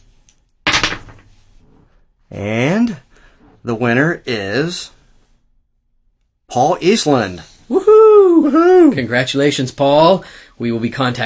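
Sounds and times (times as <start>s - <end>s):
dice being rolled: 0.7s - 1.3s
speech: 2.3s - 3.0s, 3.6s - 5.0s, 6.5s - 11.2s.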